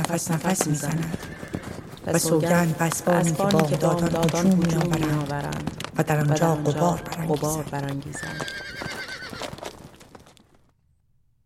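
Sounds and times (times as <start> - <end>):
speech: 0.1 - 8.7
horse neighing: 1.0 - 2.5, 6.7 - 9.7.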